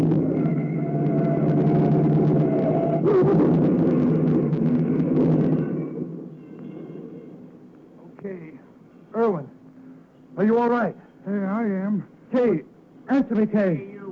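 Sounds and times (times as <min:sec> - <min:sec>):
car crash: 0:00.0 - 0:07.6
speech: 0:10.4 - 0:14.1.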